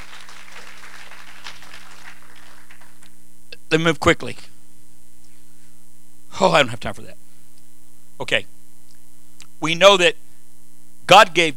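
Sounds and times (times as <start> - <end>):
audience hand clapping applause: 0.0 - 3.2
speech: 3.7 - 4.5, 6.4 - 7.2, 8.2 - 8.5, 9.6 - 10.2, 11.1 - 11.5.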